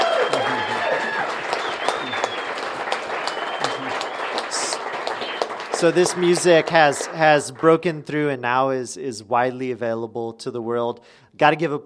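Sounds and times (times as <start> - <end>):
whistles and cheers from a crowd: 0.0 - 7.0
audience applause at a live music event: 0.0 - 7.8
speech: 5.8 - 11.8.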